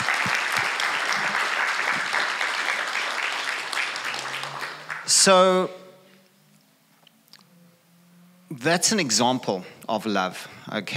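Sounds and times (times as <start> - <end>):
audience applause for a youth team at a gathering: 0.0 - 5.3
speech: 5.2 - 5.8, 8.6 - 10.9.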